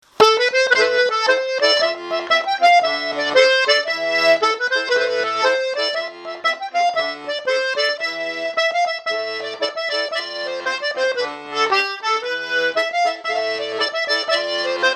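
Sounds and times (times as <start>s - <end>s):
Quercy folk round dance tune: 0.0s - 14.9s.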